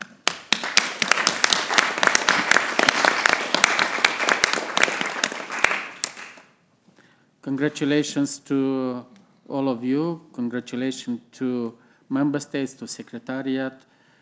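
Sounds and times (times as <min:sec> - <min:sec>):
crowd clapping confirming adoption of a pan-European master plan at a meeting of member states: 0:00.0 - 0:06.5
speech: 0:07.5 - 0:13.9.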